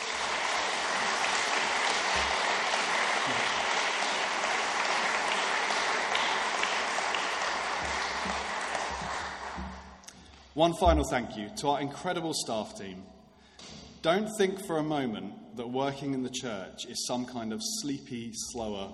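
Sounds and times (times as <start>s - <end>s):
audience applause: 0.0s - 10.0s
speech: 10.6s - 13.2s, 14.0s - 18.9s.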